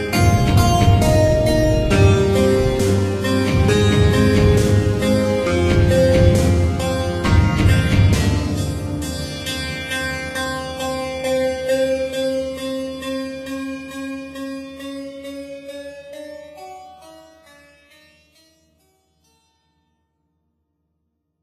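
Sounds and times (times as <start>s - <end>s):
melody in F: 0.0s - 17.5s.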